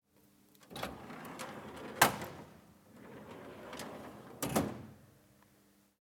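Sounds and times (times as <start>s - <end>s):
drawer: 0.6s - 5.0s.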